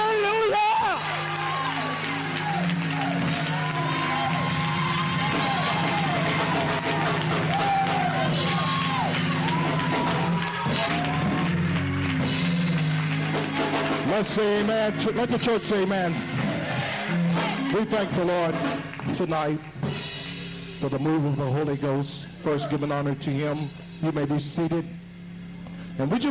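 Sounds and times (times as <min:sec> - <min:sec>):
crowd whooping and shouting: 0:00.0 - 0:19.0
church audience clapping: 0:00.0 - 0:20.0
music: 0:00.0 - 0:26.2
speech: 0:14.2 - 0:16.3, 0:17.7 - 0:19.7, 0:20.8 - 0:25.0, 0:26.0 - 0:26.2.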